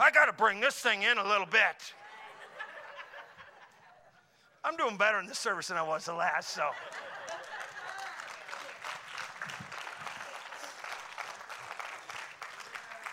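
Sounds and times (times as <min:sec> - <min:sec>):
speech: 0:00.0 - 0:02.0, 0:04.6 - 0:07.2
laughter: 0:02.0 - 0:04.4, 0:06.4 - 0:08.8
audience clapping: 0:06.8 - 0:13.1.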